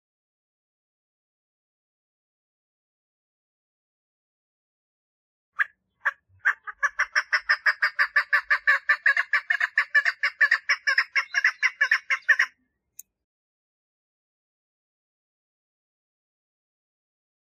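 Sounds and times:
partridge song: 0:05.6 - 0:12.6.

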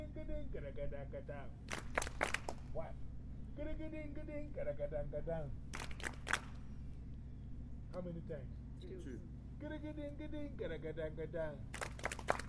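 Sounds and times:
steady low hum: 0:00.0 - 0:12.4
speech: 0:00.2 - 0:06.2, 0:07.9 - 0:11.9
hands clapping during a rhythm lesson: 0:01.7 - 0:02.7, 0:05.7 - 0:06.6, 0:11.7 - 0:12.4.

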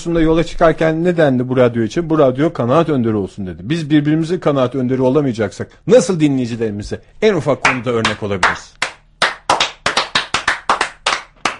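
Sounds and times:
speech: 0:00.0 - 0:08.8
applause: 0:07.6 - 0:11.5.

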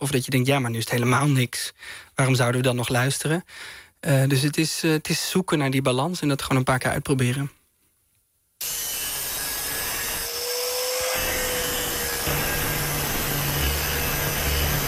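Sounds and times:
speech: 0:00.0 - 0:07.6, 0:08.6 - 0:09.0
angle grinder whining: 0:08.6 - 0:14.8.

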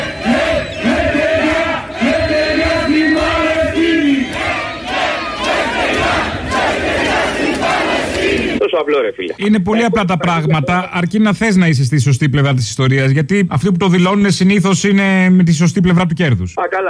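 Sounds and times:
large protest crowd chanting a slogan in unison: 0:00.0 - 0:08.6
speech: 0:08.8 - 0:16.8.

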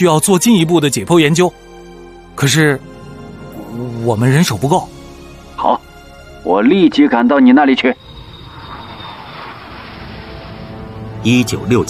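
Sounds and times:
speech: 0:00.0 - 0:01.7, 0:02.4 - 0:02.9, 0:03.8 - 0:05.0, 0:05.6 - 0:05.8, 0:06.4 - 0:08.0, 0:11.2 - 0:11.8
airplane carrying a hydrogen bomb flying over Lop Nur: 0:08.0 - 0:11.8.

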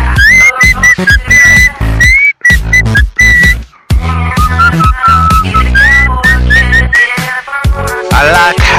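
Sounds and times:
backing beat with heavy bass and drums: 0:00.2 - 0:03.6, 0:04.4 - 0:08.7
whistled melody: 0:00.2 - 0:03.6, 0:04.4 - 0:07.2.

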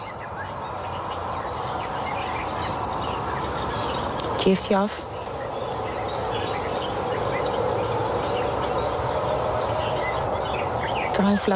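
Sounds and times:
constant broad noise: 0:00.0 - 0:11.5
great tit singing beside a small wood near a marsh: 0:00.0 - 0:11.5
speech: 0:04.4 - 0:05.1, 0:11.2 - 0:11.5.

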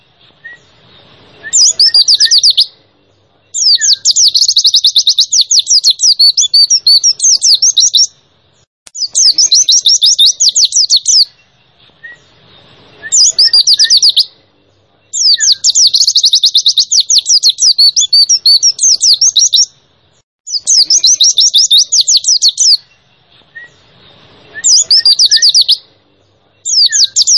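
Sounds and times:
white-eye chirping song: 0:00.0 - 0:27.3.

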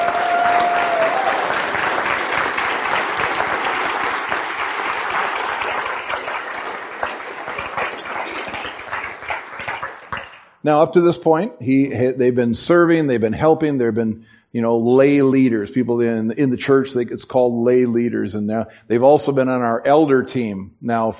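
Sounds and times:
church congregation applauding to welcome people to the stage: 0:00.0 - 0:10.6
speech: 0:10.6 - 0:21.1.

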